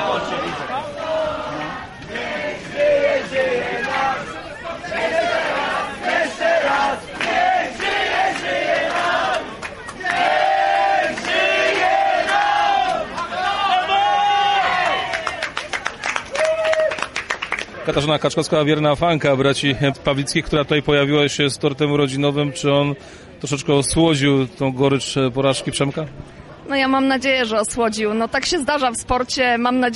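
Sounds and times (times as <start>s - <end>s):
fans shouting and chanting at post-race celebration: 0.0s - 15.5s
scattered clapping: 6.8s - 13.3s, 15.0s - 18.0s
speech: 18.0s - 29.9s.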